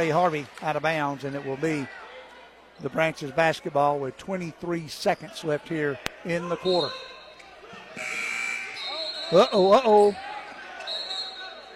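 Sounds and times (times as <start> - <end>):
speech: 0.0 - 2.0, 2.8 - 7.1, 9.3 - 10.3
referee blowing whistle: 8.0 - 9.9, 10.8 - 11.7.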